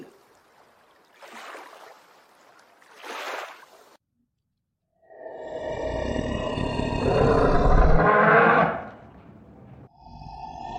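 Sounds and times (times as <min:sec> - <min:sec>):
dinosaur sounds: 0:05.3 - 0:09.9.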